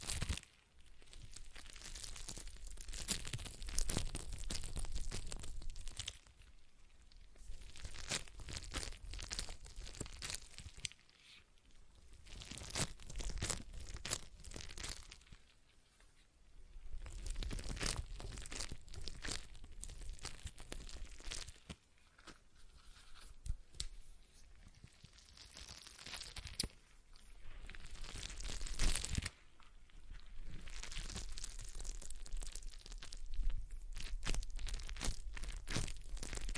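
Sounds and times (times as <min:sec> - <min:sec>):
stress ball squeezed crinkling: 0:00.0 - 0:36.5.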